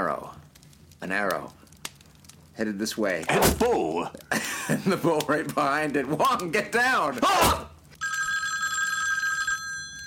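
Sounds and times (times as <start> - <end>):
speech: 1.0 - 1.6, 2.6 - 7.7
bow-shaped telephone ringing with electric bell trill: 8.0 - 10.0.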